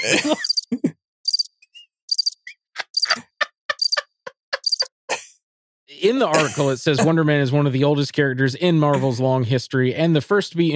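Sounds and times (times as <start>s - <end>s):
speech: 0.0s - 0.5s, 6.0s - 10.7s
laughter: 0.0s - 0.9s, 2.8s - 4.9s, 6.0s - 7.4s, 8.7s - 9.4s
crickets chirping sound effect: 1.3s - 1.5s, 2.1s - 2.4s.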